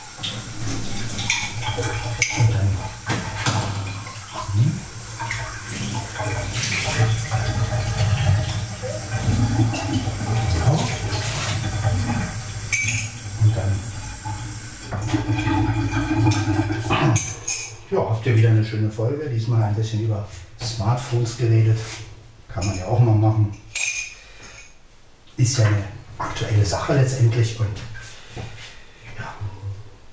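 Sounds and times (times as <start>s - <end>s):
cup being rinsed under running water with splashing: 0.0s - 17.9s
water running steadily from a tap: 0.0s - 17.9s
speech: 1.8s - 3.0s, 18.4s - 22.0s, 22.6s - 23.6s, 25.4s - 28.5s
ceramic cup clinking against the sink: 12.7s - 13.2s, 17.1s - 17.8s.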